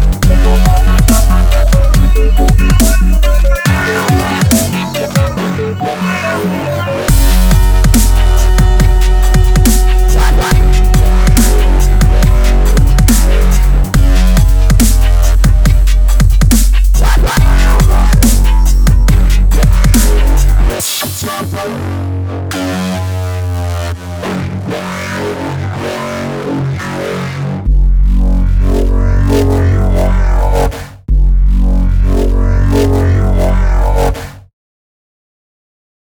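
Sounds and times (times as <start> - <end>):
dubstep music: 0.0 - 34.3.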